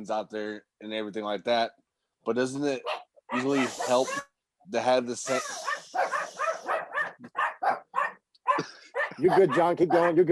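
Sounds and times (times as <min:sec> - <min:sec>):
speech: 0:00.0 - 0:05.6, 0:09.2 - 0:10.3
dogs barking: 0:02.8 - 0:04.3, 0:05.3 - 0:10.3.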